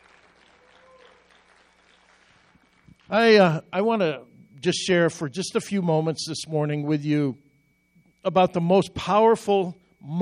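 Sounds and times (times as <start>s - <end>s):
audience clapping hands: 0.0s - 3.1s
speech: 3.1s - 7.4s, 8.2s - 10.2s.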